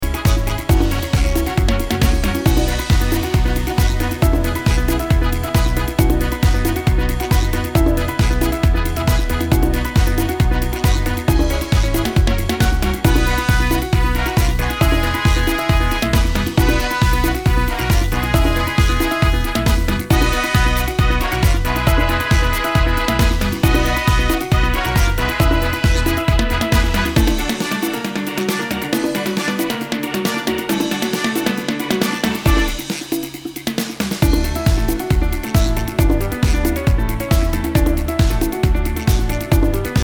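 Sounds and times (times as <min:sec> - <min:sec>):
merengue music: 0:00.0 - 0:40.0.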